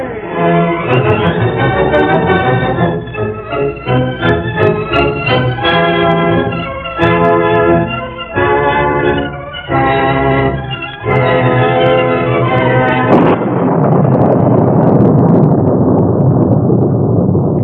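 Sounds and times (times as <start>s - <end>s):
sustained musical chord: 0.2s - 13.4s
thunderclap in a storm: 0.2s - 17.6s.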